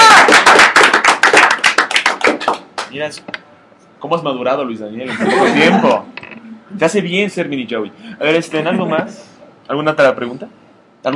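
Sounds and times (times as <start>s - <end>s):
small audience applauding at a comic shop event: 0.0s - 3.0s
speech: 3.0s - 3.4s, 4.0s - 11.1s
laughter: 5.1s - 6.8s, 8.5s - 9.3s.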